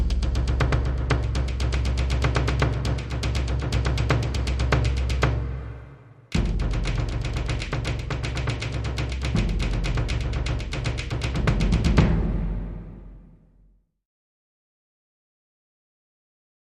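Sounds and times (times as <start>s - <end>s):
Japanese music loop: 0.0s - 5.7s, 6.3s - 13.1s.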